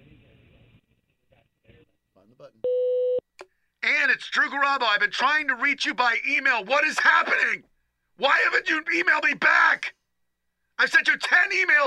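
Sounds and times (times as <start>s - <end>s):
answering machine beep tone: 2.6s - 3.2s
speech: 4.2s - 10.0s, 10.8s - 11.8s.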